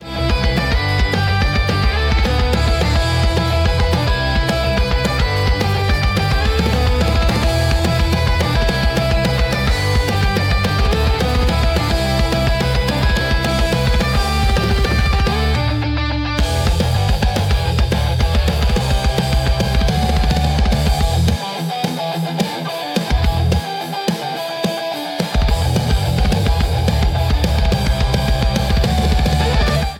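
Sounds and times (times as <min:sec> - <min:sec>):
musical riff: 0:00.0 - 0:29.9.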